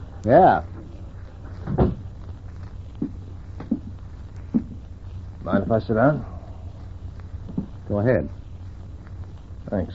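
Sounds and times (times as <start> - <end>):
speech: 0.2 - 0.7, 5.5 - 6.3, 7.9 - 8.4, 9.7 - 9.9
door being shut: 1.6 - 2.0.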